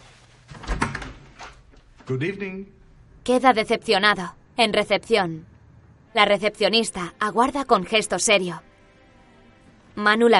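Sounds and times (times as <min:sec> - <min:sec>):
door opening: 0:00.4 - 0:02.3
speech: 0:02.1 - 0:05.5, 0:06.1 - 0:08.7, 0:10.0 - 0:10.3.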